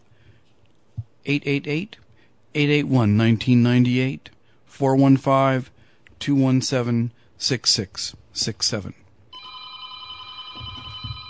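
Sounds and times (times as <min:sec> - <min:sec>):
speech: 0:01.2 - 0:09.0
telephone ringing: 0:09.4 - 0:11.2.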